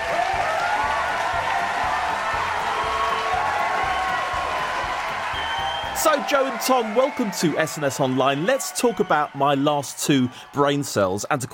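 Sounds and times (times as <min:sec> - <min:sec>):
audience applause and cheering welcoming two comedians at the Gilded Balloon: 0:00.0 - 0:11.5
speech: 0:06.0 - 0:11.5.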